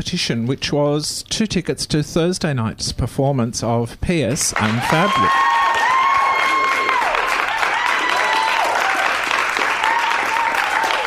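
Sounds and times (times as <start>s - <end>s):
speech: 0.0s - 5.6s
canned applause sound effect from a button: 4.4s - 11.0s.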